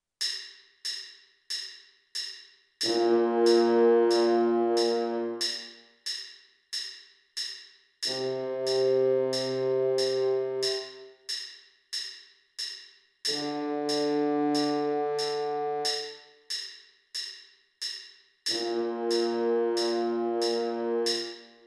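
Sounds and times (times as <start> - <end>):
trombone: 2.8 - 5.7, 8.1 - 11.1, 13.3 - 16.2, 18.5 - 21.6.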